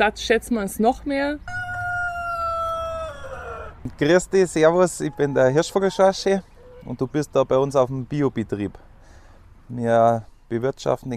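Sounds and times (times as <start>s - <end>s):
speech: 0.0s - 1.6s, 3.9s - 8.8s, 9.7s - 11.1s
rooster crowing: 1.4s - 3.8s, 4.7s - 6.9s.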